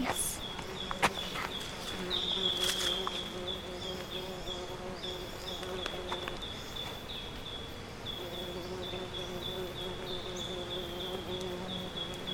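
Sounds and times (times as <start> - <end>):
housefly buzzing: 0.0 - 12.3.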